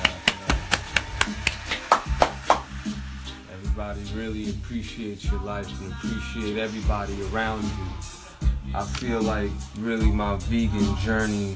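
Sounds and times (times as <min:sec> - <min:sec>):
hands clapping: 0:00.0 - 0:02.9
speech: 0:03.8 - 0:08.1, 0:08.7 - 0:11.5.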